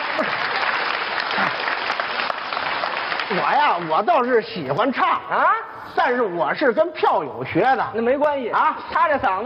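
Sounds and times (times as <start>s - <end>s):
audience applause: 0.0s - 4.3s
speech: 0.2s - 0.5s, 3.3s - 9.4s.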